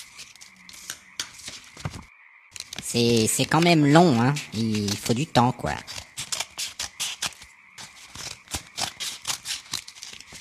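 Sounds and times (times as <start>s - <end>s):
scissors cutting: 2.6s - 10.3s
speech: 2.9s - 6.0s.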